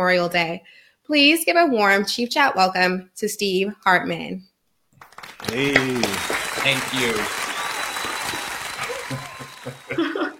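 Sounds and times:
speech: 0:00.0 - 0:04.5, 0:05.2 - 0:07.4
crowd applause: 0:05.0 - 0:10.3
brief laugh: 0:08.8 - 0:10.3.

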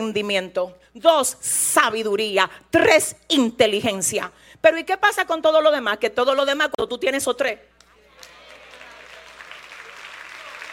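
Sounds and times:
speech: 0:00.0 - 0:07.7
audience applause: 0:08.1 - 0:10.7.

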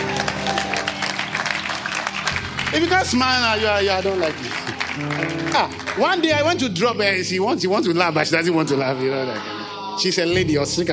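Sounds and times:
audience clapping hands: 0:00.0 - 0:07.0
speech: 0:02.8 - 0:10.9.

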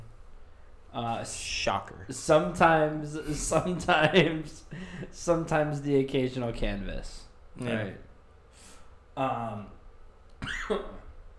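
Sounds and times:
speech: 0:01.0 - 0:08.0, 0:09.2 - 0:09.8, 0:10.4 - 0:11.0
cough: 0:10.4 - 0:11.1.

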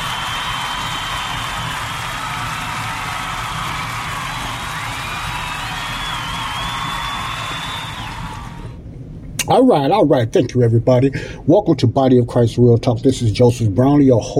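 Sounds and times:
crowd applause and cheering: 0:00.0 - 0:08.8
high whistle: 0:00.0 - 0:08.8
speech: 0:09.5 - 0:14.3.

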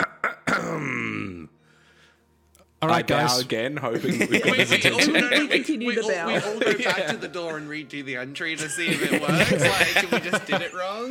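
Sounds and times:
person clearing throat: 0:00.0 - 0:01.5
speech: 0:02.8 - 0:11.1
laughter: 0:03.8 - 0:11.1.

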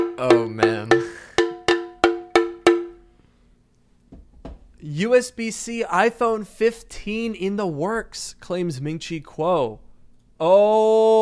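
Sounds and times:
bell-like object clanging: 0:00.0 - 0:03.0
soft knocks: 0:00.0 - 0:03.2, 0:04.1 - 0:04.8
speech: 0:00.2 - 0:01.3, 0:04.8 - 0:09.8, 0:10.4 - 0:11.2.

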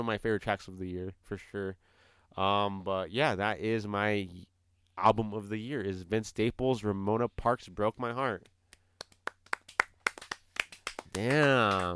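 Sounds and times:
speech: 0:00.0 - 0:08.5, 0:11.2 - 0:11.9
clapping: 0:08.7 - 0:11.9.

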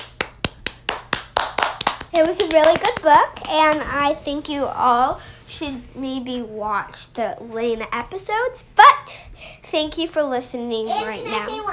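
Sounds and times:
sharp hand claps: 0:00.0 - 0:04.0
speech: 0:02.2 - 0:11.7.

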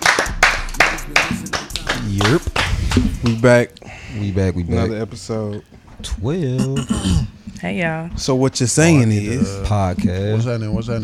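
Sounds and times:
hands clapping: 0:00.0 - 0:03.6
speech: 0:02.2 - 0:11.0.

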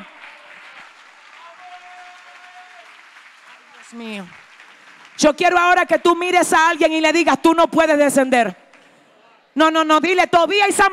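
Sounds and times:
audience applauding: 0:00.0 - 0:06.2
speech: 0:03.9 - 0:04.4, 0:05.2 - 0:08.6, 0:09.6 - 0:10.9.

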